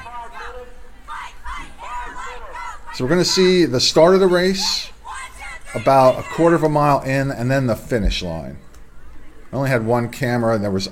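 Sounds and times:
high school team chanting to get psyched: 0:00.0 - 0:06.8
crowd murmur: 0:00.0 - 0:07.0, 0:07.8 - 0:09.6
speech: 0:03.0 - 0:04.9, 0:05.7 - 0:08.7, 0:09.5 - 0:10.9.

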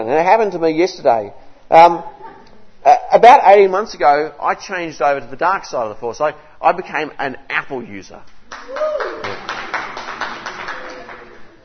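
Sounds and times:
speech: 0:00.0 - 0:02.2, 0:02.8 - 0:09.4
applause: 0:08.5 - 0:11.6.

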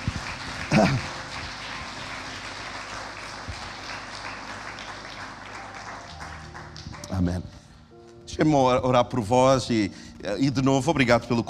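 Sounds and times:
audience applause: 0:00.0 - 0:07.5
laughter: 0:00.6 - 0:01.3
speech: 0:00.8 - 0:01.2, 0:08.4 - 0:11.4.

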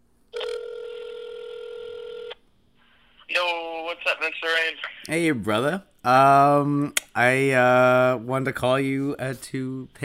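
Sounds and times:
ringback tone from an outgoing phone call: 0:00.3 - 0:02.4
speech: 0:03.4 - 0:10.0.

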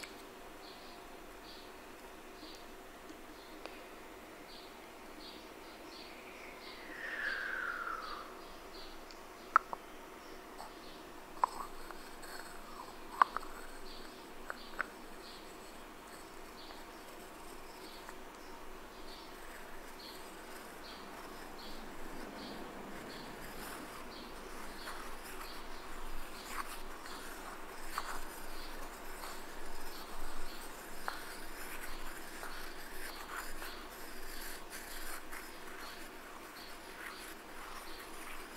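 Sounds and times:
low steady hiss: 0:00.0 - 0:38.5
scratching: 0:10.6 - 0:38.5.

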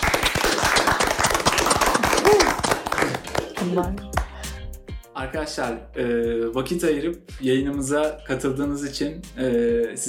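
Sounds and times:
group applause: 0:00.0 - 0:04.4
speech: 0:03.6 - 0:04.2, 0:05.2 - 0:10.0.

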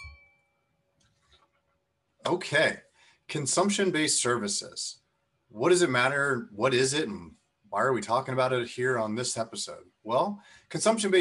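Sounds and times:
glasses clinking in a toast: 0:00.0 - 0:00.4
speech: 0:02.3 - 0:11.2.

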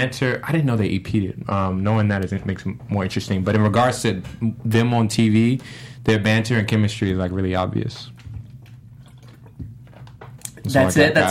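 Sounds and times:
speech: 0:00.0 - 0:08.2, 0:10.6 - 0:11.2
person sipping water: 0:08.1 - 0:10.6.

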